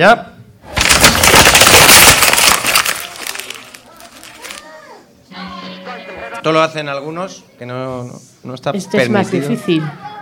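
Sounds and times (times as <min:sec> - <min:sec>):
speech: 0:00.0 - 0:00.3, 0:06.4 - 0:10.1
paper being crushed: 0:00.7 - 0:04.7.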